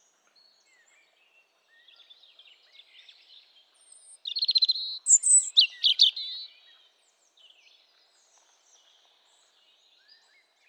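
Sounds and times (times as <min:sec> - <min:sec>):
robin singing: 0:04.2 - 0:06.5.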